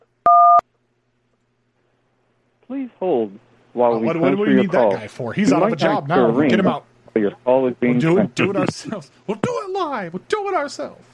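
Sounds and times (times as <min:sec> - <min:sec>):
telephone keypad tone entering a room number: 0:00.3 - 0:00.6
speech: 0:02.7 - 0:11.1.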